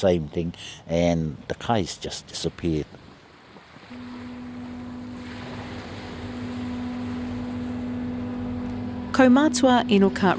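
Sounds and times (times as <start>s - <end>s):
speech: 0.0s - 3.0s, 9.2s - 10.3s
wash of water: 2.3s - 10.3s
barge engine crossing from Omokoroa to Matakana Island: 3.9s - 10.3s.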